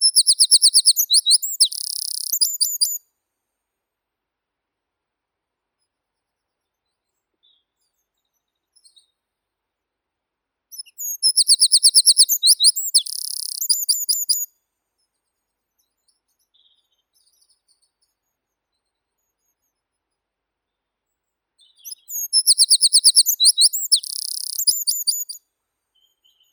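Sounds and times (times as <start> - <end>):
wren Troglodytes troglodytes: 0.0 - 3.0, 10.8 - 14.5, 21.8 - 25.4.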